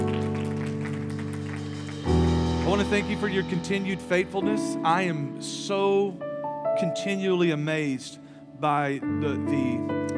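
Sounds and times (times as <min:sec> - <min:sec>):
audience clapping: 0:00.0 - 0:03.1
speech: 0:02.7 - 0:10.1.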